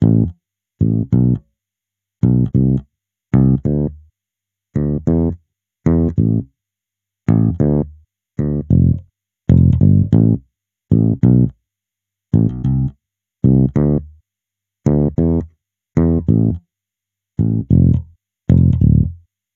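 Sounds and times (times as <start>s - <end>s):
electric bass: 0.0s - 1.4s, 2.2s - 4.0s, 4.8s - 6.5s, 7.3s - 11.6s, 12.3s - 14.1s, 14.8s - 16.6s, 17.4s - 19.2s.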